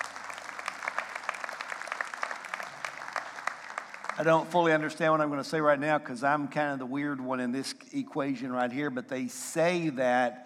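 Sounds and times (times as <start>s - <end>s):
audience applause: 0.0s - 4.6s
speech: 4.2s - 10.4s.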